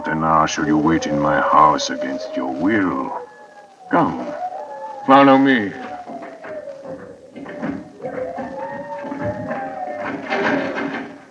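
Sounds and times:
speech: 0:00.1 - 0:03.3, 0:03.9 - 0:04.4, 0:05.0 - 0:05.9
trying to open a bolted door: 0:05.0 - 0:11.2.

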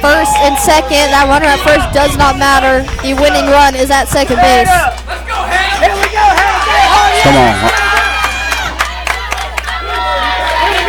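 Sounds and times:
speech: 0:00.0 - 0:05.1, 0:07.2 - 0:07.8
stadium crowd cheering: 0:00.0 - 0:10.8.

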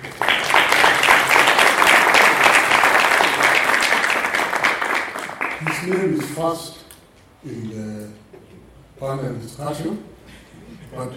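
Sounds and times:
audience applause: 0:00.0 - 0:06.4
speech: 0:05.8 - 0:06.8, 0:07.4 - 0:08.2, 0:09.0 - 0:10.1, 0:10.9 - 0:11.1.

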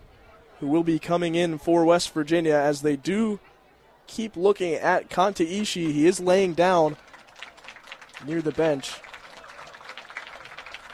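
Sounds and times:
speech: 0:00.6 - 0:03.5, 0:04.1 - 0:07.0, 0:08.2 - 0:09.1
stadium crowd applause: 0:05.6 - 0:10.9.

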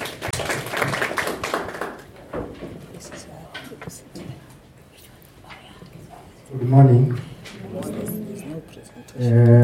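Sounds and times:
audience clapping: 0:00.0 - 0:02.4
speech: 0:06.6 - 0:07.2, 0:09.2 - 0:09.5.

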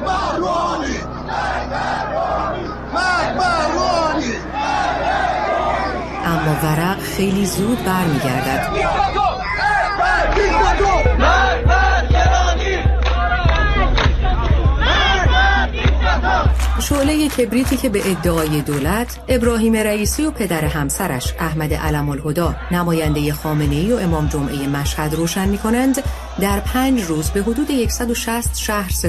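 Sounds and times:
low rumbling: 0:00.0 - 0:22.7
large protest march crowd chanting in unison: 0:00.0 - 0:29.0
speech: 0:06.4 - 0:09.2, 0:16.8 - 0:29.0.

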